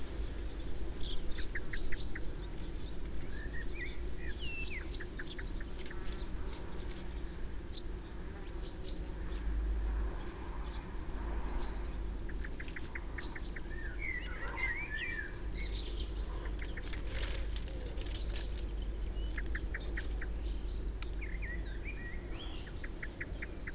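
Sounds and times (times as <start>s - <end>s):
Eurasian wren ticking calls: 0.1s - 10.9s, 12.1s - 23.7s
bird slurred whistles and trills: 13.9s - 17.2s.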